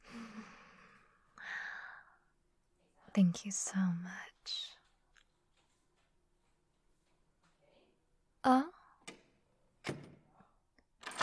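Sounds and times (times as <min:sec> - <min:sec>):
speech: 0:03.2 - 0:04.7, 0:08.4 - 0:08.7
door being closed: 0:09.0 - 0:10.4, 0:11.0 - 0:11.2.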